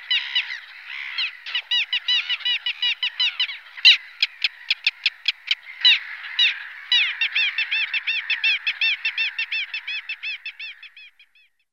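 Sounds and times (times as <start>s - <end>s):
little gull calls: 0.0s - 11.6s.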